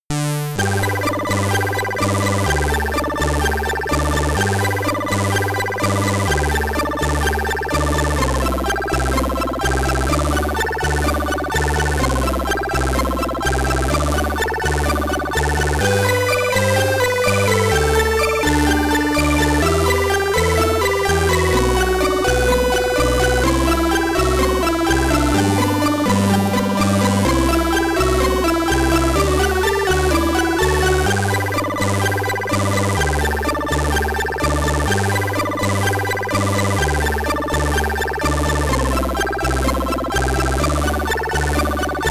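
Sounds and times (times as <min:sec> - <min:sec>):
SID chip stereo chiptune music: 0:00.1 - 0:42.0.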